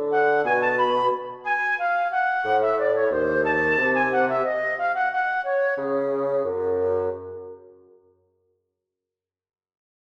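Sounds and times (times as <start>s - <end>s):
woodwinds and strings playing a recitative chorus: 0.0s - 8.0s.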